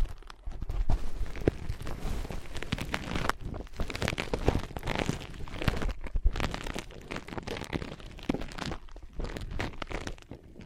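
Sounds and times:
scratching on ear pads: 0.0s - 10.6s.

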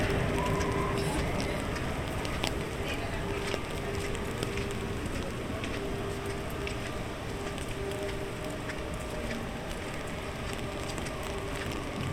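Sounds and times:
crowd murmuring in Animal Kingdom park at Walt Disney World: 0.0s - 12.1s
faint music or whistles: 0.0s - 12.1s.

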